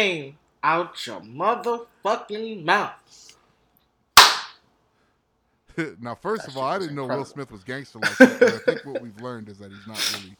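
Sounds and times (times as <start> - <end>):
speech: 0.0 - 3.4, 5.8 - 10.3
slap to the face: 4.2 - 4.6
laughter: 8.0 - 9.3.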